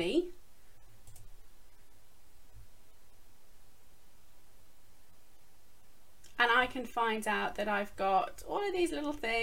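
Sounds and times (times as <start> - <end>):
speech: 0.0 - 0.4, 6.7 - 9.4
low steady hiss: 0.0 - 9.4
computer mouse clicks while navigating CRM software: 0.9 - 1.4.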